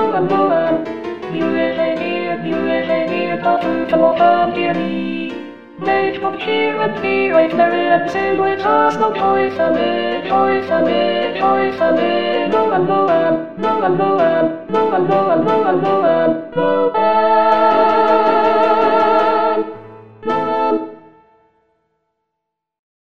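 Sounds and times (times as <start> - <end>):
alto voice singing rehearsal track: 0.0 - 21.3.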